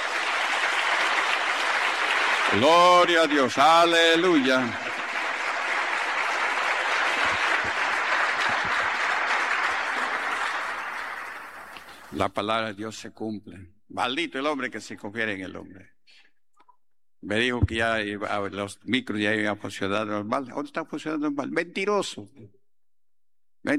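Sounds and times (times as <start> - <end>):
church audience applause: 0.0 - 12.2
speech: 2.5 - 4.8, 12.2 - 16.0, 17.2 - 22.6.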